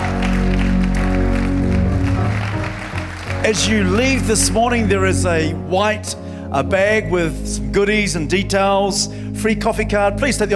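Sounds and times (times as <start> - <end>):
church congregation applauding visitors at a morning service: 0.0 - 4.8
speech: 3.4 - 10.5.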